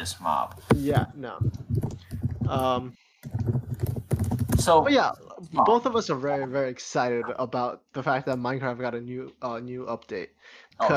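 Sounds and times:
speech: 0.0 - 3.9, 4.6 - 10.9
computer keyboard typing: 1.4 - 4.8.

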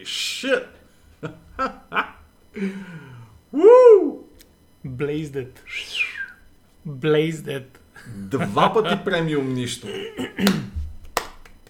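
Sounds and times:
speech: 0.0 - 4.2, 4.8 - 6.2, 6.8 - 10.8
laughter: 1.2 - 2.7, 8.0 - 10.8
slow clap: 10.4 - 11.6.

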